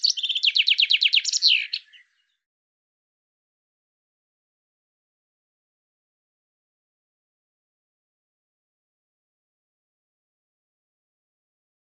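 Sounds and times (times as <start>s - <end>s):
bird song: 0.0s - 2.5s.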